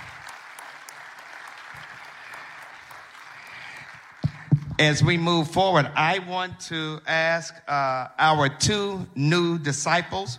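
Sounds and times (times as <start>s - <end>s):
audience giving a round of applause: 0.0s - 4.8s
speech: 4.8s - 10.3s.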